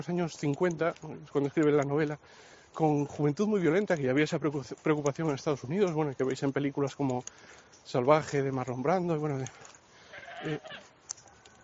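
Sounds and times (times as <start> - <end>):
speech: 0.0 - 9.8, 10.4 - 10.8
soft hiss: 0.0 - 11.6
goat bleating: 10.1 - 10.9.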